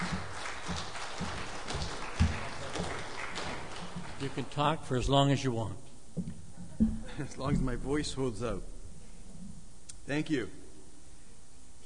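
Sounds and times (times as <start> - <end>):
audience applause: 0.0 - 4.9
speech: 4.2 - 6.3, 7.2 - 8.8, 10.1 - 10.6.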